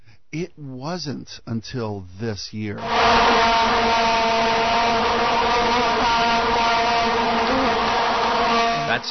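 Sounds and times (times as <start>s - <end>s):
speech: 0.3s - 6.3s
bees buzzing at hive: 2.8s - 9.0s.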